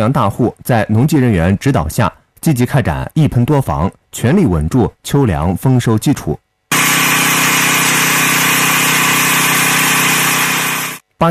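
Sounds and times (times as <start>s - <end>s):
speech: 0.0s - 6.9s
agricultural spraying drone rotors whining over cornfield: 6.7s - 11.0s.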